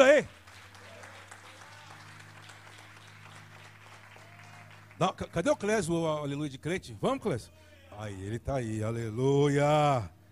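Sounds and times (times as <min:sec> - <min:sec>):
speech: 0:00.0 - 0:00.4, 0:05.0 - 0:10.2
audience applause: 0:00.0 - 0:06.0.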